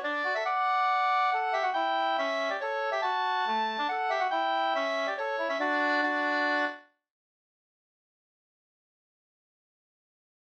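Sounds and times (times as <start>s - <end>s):
hambo polska folk dance tune: 0.0s - 6.8s.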